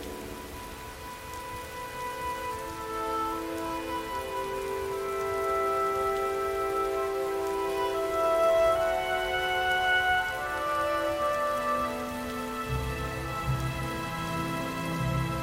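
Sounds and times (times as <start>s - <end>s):
rain pattering: 0.0s - 15.4s
slow sustained game music with held chords: 0.0s - 15.4s.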